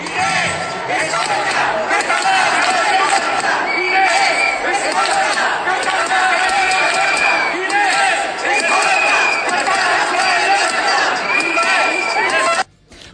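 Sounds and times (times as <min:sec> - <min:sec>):
crowd of protesting neighbours shouting and chattering outdoors: 0:00.0 - 0:12.7
higher raised calls: 0:00.0 - 0:12.7.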